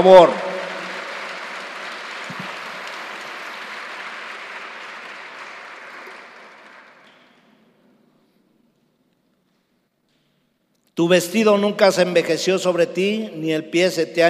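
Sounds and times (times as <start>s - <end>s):
speech: 0.0s - 0.4s, 11.0s - 14.2s
audience applause: 0.0s - 7.6s.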